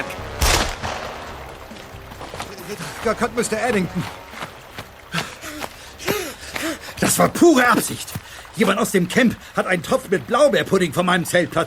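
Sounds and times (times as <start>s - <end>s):
gunshot: 0.4s - 1.3s
speech: 2.7s - 4.3s, 7.1s - 11.6s.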